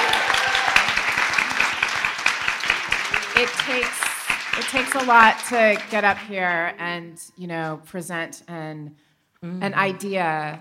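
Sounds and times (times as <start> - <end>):
audience applause for pitchers: 0.0 - 6.3
speech: 3.4 - 4.0, 4.6 - 10.5.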